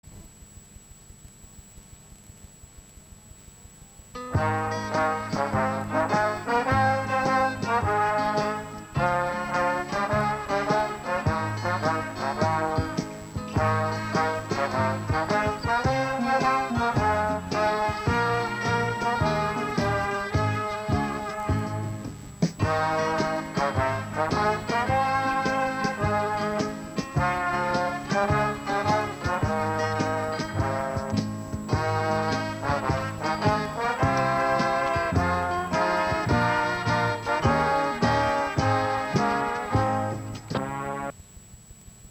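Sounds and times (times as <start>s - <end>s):
instrumental music: 3.8s - 41.2s.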